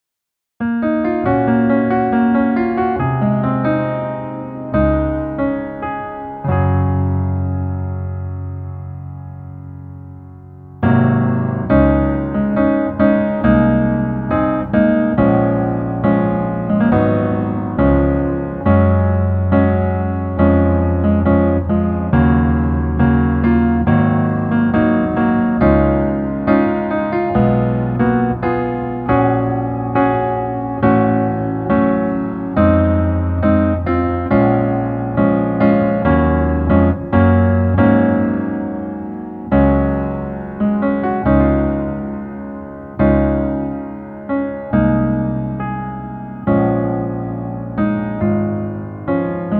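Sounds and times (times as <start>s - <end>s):
piano version in male key: 0.6s - 49.5s.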